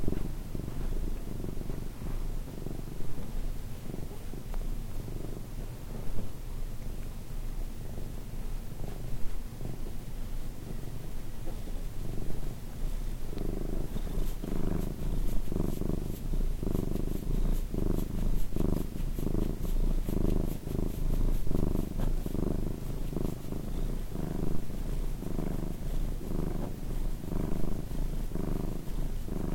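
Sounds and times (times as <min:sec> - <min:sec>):
cat purring: 0:00.0 - 0:29.5.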